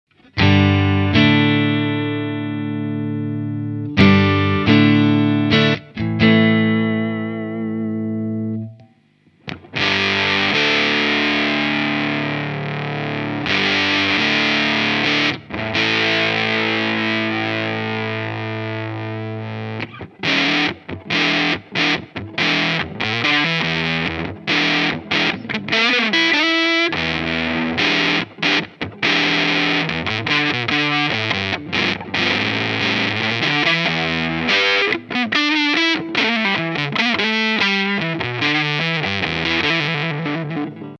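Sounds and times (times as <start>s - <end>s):
clean amp tone: 0.1s - 40.9s.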